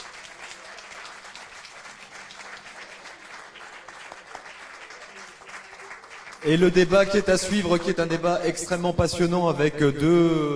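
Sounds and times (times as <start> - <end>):
crowd applauding: 0.0 - 8.1
speech: 6.4 - 10.5.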